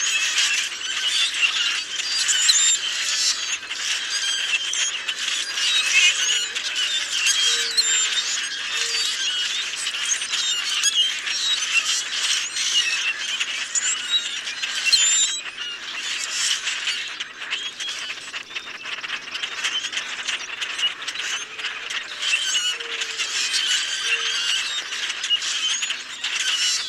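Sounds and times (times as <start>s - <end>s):
common grackle flock squeaky hubbub: 0.0s - 26.8s.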